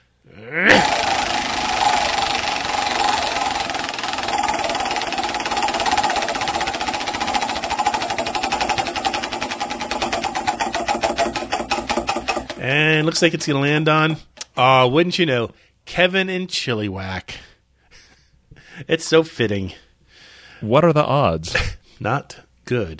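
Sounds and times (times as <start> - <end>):
prize wheel spinning: 0.7 - 12.9
speech: 13.0 - 17.5, 18.9 - 19.8, 20.6 - 22.9.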